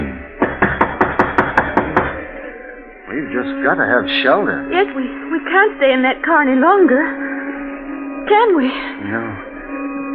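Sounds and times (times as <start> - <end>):
knocking on a door: 0.4 - 2.3
speech: 3.2 - 7.2, 8.2 - 9.4.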